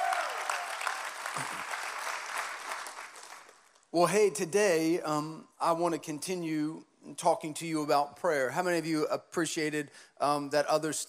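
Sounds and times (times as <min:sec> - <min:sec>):
audience applauding: 0:00.0 - 0:03.7
speech: 0:01.4 - 0:01.8, 0:03.9 - 0:11.0.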